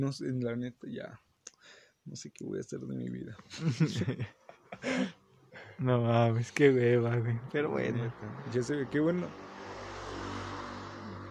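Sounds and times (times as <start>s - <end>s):
speech: 0.0s - 5.2s, 5.8s - 9.5s
laughter: 3.5s - 5.1s
motorcycles passing outside: 6.7s - 11.2s.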